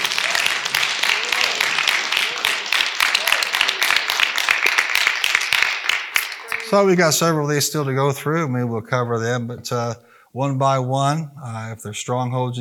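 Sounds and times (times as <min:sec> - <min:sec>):
audience hand clapping applause: 0:00.0 - 0:07.0
speech: 0:06.7 - 0:12.5.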